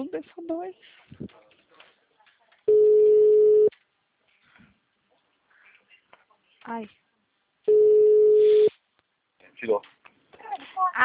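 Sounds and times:
speech: 0.0 - 1.5, 6.6 - 7.0, 9.6 - 10.0, 10.8 - 11.0
telephone ringback tone of an unanswered call: 2.7 - 3.7, 7.7 - 8.7.

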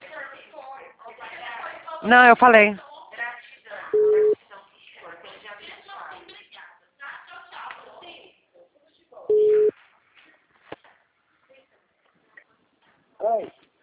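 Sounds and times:
speech: 2.0 - 2.9
telephone tone after a dropped phone call: 4.0 - 4.4, 9.3 - 9.7.

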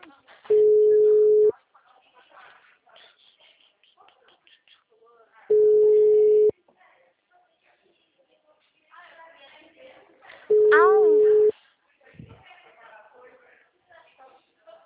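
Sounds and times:
people talking quietly: 0.0 - 14.8
telephone ringing tone on an unanswered call: 0.5 - 1.5, 5.5 - 6.5, 10.5 - 11.5.

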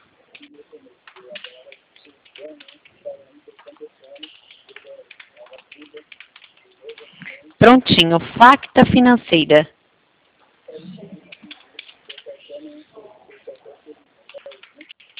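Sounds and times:
voice: 0.0 - 9.6, 10.6 - 15.0
typing on a computer keyboard: 0.3 - 7.6, 10.7 - 15.1
speech: 7.6 - 9.7.

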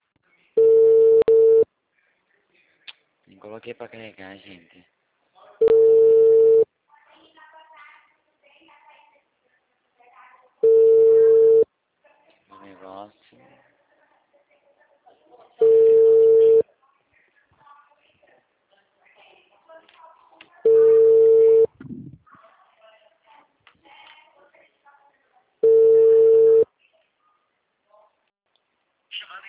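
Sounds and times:
telephone call tones before being forwarded to voicemail: 0.6 - 1.7, 5.6 - 6.7, 10.6 - 11.7, 15.6 - 16.6, 20.6 - 21.8, 25.6 - 26.7
speech: 3.3 - 5.0.

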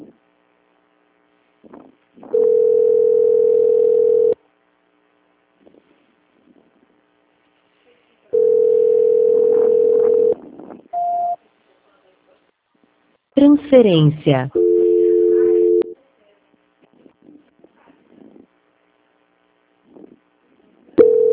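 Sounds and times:
telephone ringback tone on an unanswered call: 2.3 - 4.4, 8.3 - 10.4, 14.6 - 16.0, 21.0 - 21.3
speech: 13.7 - 14.6.

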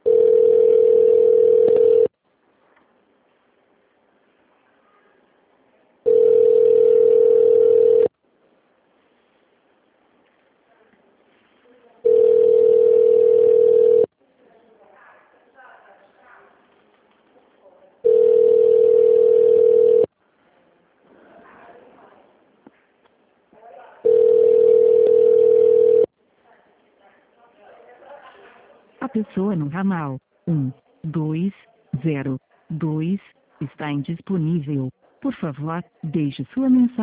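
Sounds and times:
telephone ringback tone as a call connects to an office extension: 0.0 - 2.1, 6.0 - 8.1, 12.0 - 14.1, 18.0 - 20.1, 24.0 - 26.1
faint noise: 0.0 - 37.0
speech: 29.2 - 37.0.

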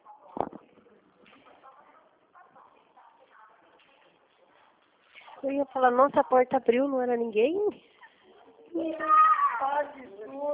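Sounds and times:
murmur: 0.0 - 10.5
speech: 5.4 - 7.9, 8.8 - 10.5
small child shouting: 8.8 - 10.0.

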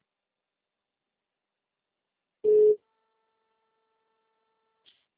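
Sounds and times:
telephone ringing with an electronic tone: 2.5 - 2.8.

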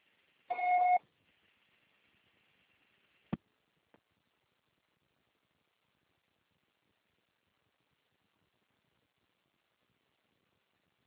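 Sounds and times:
faint telephone line hiss: 0.0 - 11.0
voicemail beep: 0.5 - 1.0.

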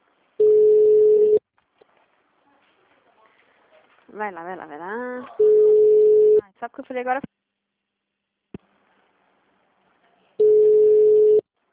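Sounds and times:
ringback tone of an outgoing phone call: 0.4 - 1.4, 5.4 - 6.4, 10.4 - 11.4
speech: 4.2 - 5.7, 6.6 - 7.3.

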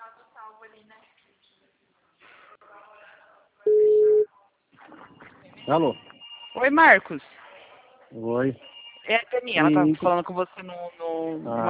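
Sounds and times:
speech: 0.5 - 1.3, 4.9 - 7.3, 8.1 - 11.6
telephone line tone: 3.7 - 4.3.

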